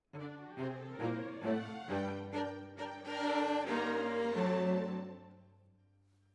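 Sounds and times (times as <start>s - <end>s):
cellos playing: 0.1s - 5.4s.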